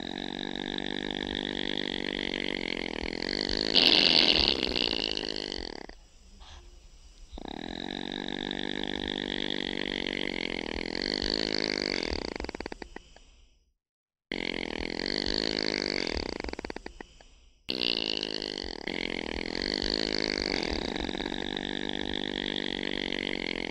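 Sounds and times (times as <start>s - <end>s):
opossum: 0.0s - 13.1s, 14.3s - 23.7s.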